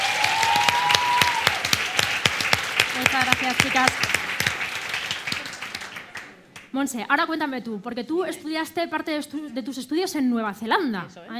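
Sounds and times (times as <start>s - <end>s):
whoops or cheers: 0.0s - 1.8s
audience applause: 0.0s - 6.6s
speech: 3.4s - 4.2s, 6.7s - 11.3s.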